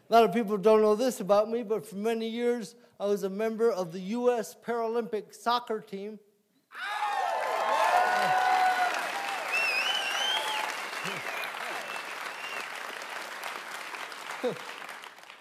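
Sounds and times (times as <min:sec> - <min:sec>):
speech: 0:00.1 - 0:06.9, 0:14.4 - 0:14.7
audience whoops and cheers: 0:06.7 - 0:12.7
audience clapping: 0:06.9 - 0:15.4.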